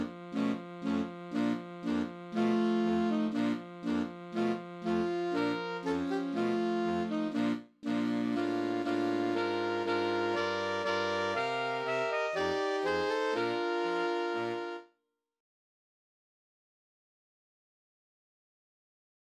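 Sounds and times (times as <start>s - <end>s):
saxophone quartet: 0.0s - 14.9s.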